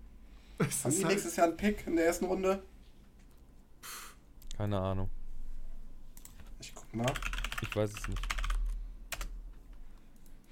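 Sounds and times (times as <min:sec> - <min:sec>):
speech: 0:00.6 - 0:02.7, 0:04.6 - 0:05.2, 0:06.7 - 0:08.3
typing hard on a computer keyboard: 0:07.0 - 0:09.3.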